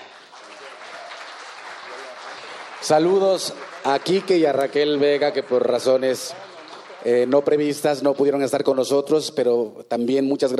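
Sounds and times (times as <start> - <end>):
audience applause: 0.0 - 8.0
speech: 2.8 - 10.5.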